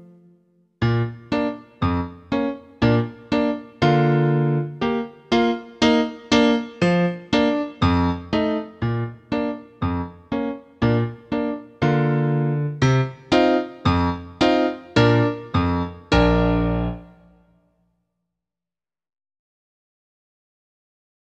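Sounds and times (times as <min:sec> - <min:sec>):
bagatelle accompaniment without horn: 0:00.8 - 0:17.4.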